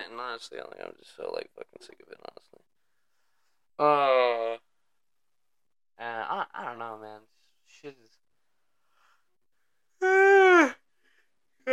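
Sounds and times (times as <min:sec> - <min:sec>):
speech: 0:00.2 - 0:02.6, 0:03.8 - 0:04.7, 0:06.0 - 0:08.2, 0:10.0 - 0:10.7
person yawning: 0:10.0 - 0:10.8.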